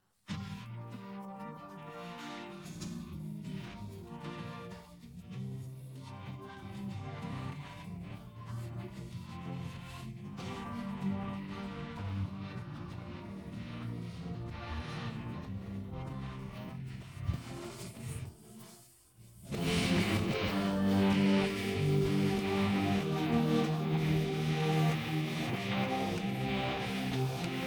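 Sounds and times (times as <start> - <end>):
music in G minor: 0.0 - 27.6.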